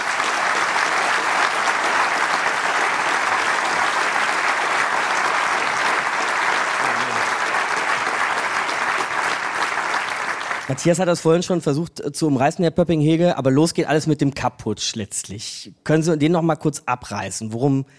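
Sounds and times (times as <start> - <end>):
audience applause: 0.0 - 10.9
speech: 10.7 - 17.9.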